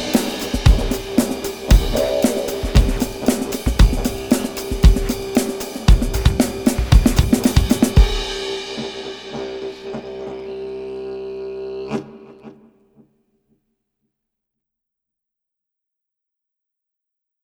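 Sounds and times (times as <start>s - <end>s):
tribal forest sounds: 0.0s - 12.5s.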